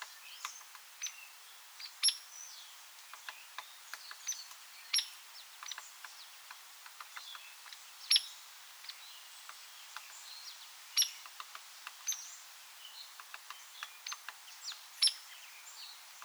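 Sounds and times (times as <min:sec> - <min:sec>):
Hairy Woodpecker Leuconotopicus villosus: 0:02.9 - 0:10.2, 0:11.0 - 0:16.2.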